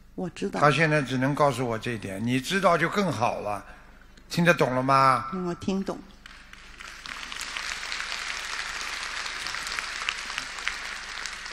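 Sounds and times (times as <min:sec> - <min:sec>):
speech: 0:00.2 - 0:06.1
faint scattered applause from small audience: 0:06.2 - 0:11.5.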